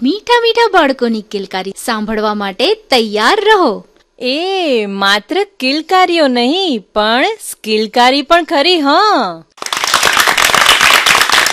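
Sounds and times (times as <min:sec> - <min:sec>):
speech: 0:00.0 - 0:09.8
audience applause at a children's performance show: 0:09.6 - 0:11.5.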